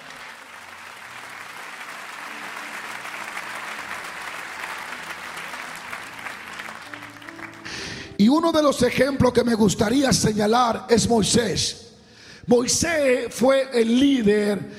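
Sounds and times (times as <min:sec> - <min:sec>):
audience applauding: 0:00.0 - 0:08.2
speech: 0:08.2 - 0:11.8, 0:12.5 - 0:14.7.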